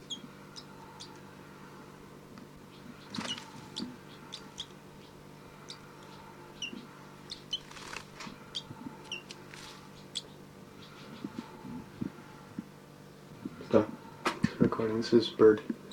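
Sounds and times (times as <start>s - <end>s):
low steady hum: 0.0s - 15.9s
young bird begging calls: 3.0s - 11.4s
rustling flutters: 3.1s - 3.8s, 7.5s - 10.0s
speech: 14.8s - 15.8s.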